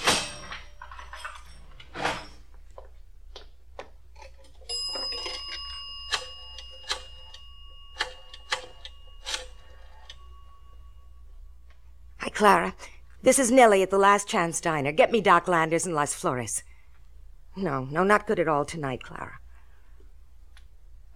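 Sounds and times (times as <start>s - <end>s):
cash register bell ringing: 0.0s - 2.4s, 4.6s - 11.4s
speech: 12.4s - 16.7s, 17.6s - 19.4s.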